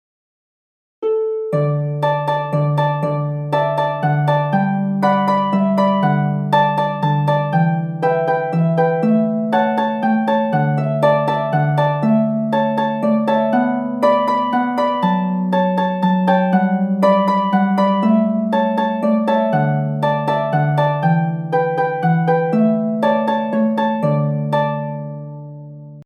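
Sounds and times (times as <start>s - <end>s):
harp melody: 1.0s - 26.0s.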